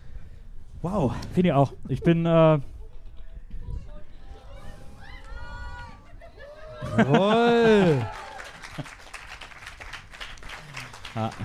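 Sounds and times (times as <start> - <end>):
speech: 0.8 - 2.7, 7.0 - 8.2, 11.2 - 11.4
laughter: 5.9 - 9.2, 10.6 - 11.4
audience applause: 6.8 - 11.4.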